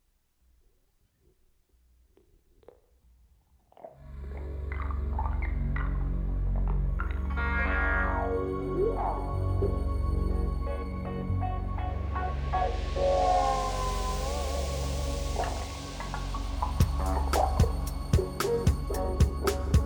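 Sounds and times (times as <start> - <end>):
instrumental music: 4.8 - 19.8.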